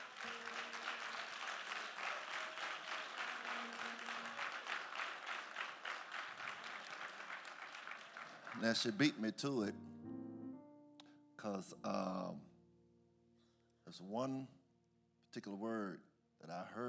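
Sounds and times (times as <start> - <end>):
audience clapping hands: 0.0 - 9.2
speech: 8.6 - 9.9, 11.4 - 12.5, 13.9 - 14.6, 15.3 - 16.8.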